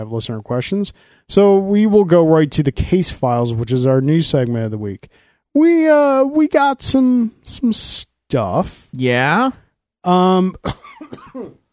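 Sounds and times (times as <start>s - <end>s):
speech: 0.0s - 11.6s
cough: 10.6s - 11.7s.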